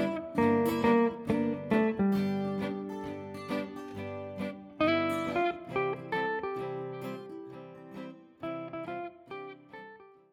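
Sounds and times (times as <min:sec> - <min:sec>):
swing blues music: 0:00.0 - 0:06.9.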